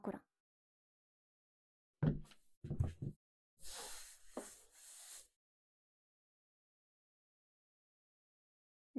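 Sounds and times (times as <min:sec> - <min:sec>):
maid's gloved finger ear cleaning: 0:02.1 - 0:05.3
bonten ear pick fluff brushing: 0:02.7 - 0:05.2
cotton swab in ear: 0:03.6 - 0:05.3.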